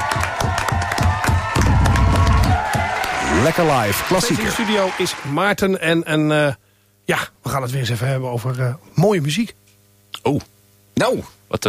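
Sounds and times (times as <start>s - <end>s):
live audience cheering and whooping: 0.0s - 5.4s
live audience applauding: 0.0s - 5.7s
speech: 3.4s - 9.6s, 10.2s - 11.6s.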